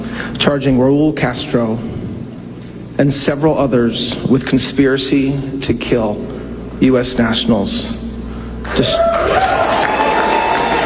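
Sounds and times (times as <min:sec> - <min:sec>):
speech: 0:00.4 - 0:02.0, 0:03.0 - 0:08.0, 0:08.6 - 0:09.7
crowd erupting in loud cheering with shouting voices and clapping: 0:08.6 - 0:10.8.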